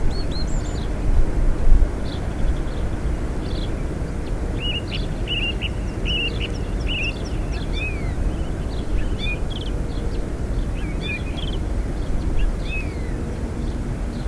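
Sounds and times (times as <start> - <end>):
songbirds singing: 0.0 - 14.2.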